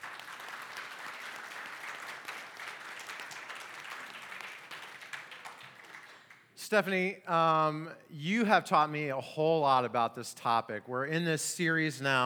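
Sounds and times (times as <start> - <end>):
congregation applauding guest at a Whiting Christian Church service: 0.0 - 6.5
speech: 6.7 - 12.2.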